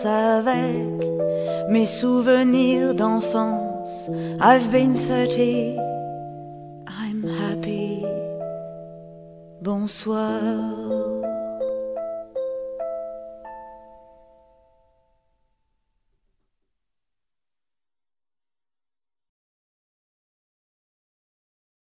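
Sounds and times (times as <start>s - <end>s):
soft French songs: 0.0s - 15.6s.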